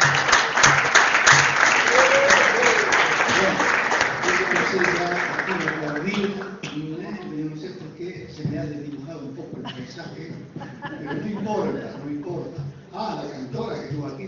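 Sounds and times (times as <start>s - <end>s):
audience applause: 0.0s - 6.8s
laughter: 9.5s - 12.3s.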